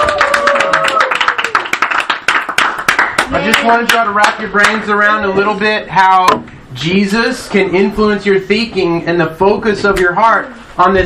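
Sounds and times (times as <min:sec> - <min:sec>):
faint voices cheering: 0:00.0 - 0:01.5
small group clapping unevenly: 0:00.0 - 0:05.0
speech: 0:03.4 - 0:11.0.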